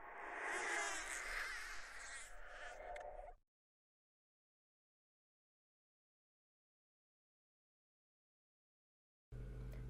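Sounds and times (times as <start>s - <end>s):
scary demon ghost baby crying: 0.0s - 3.4s.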